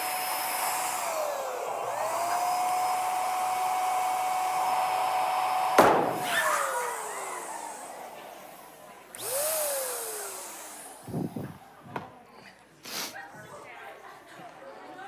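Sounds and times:
electric air pump inflating a balloon: 0.0s - 11.9s.

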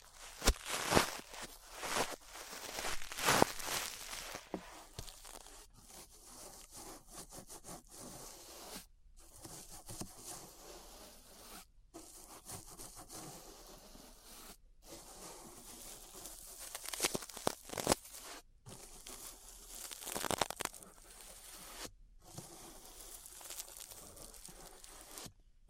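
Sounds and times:
ear brushing on a 3Dio microphone: 0.0s - 7.5s, 15.6s - 25.4s.

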